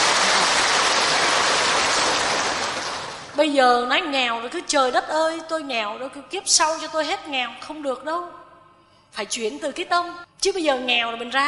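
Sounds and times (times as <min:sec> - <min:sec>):
applause: 0:00.0 - 0:03.4
speech: 0:03.4 - 0:08.4, 0:09.1 - 0:11.4.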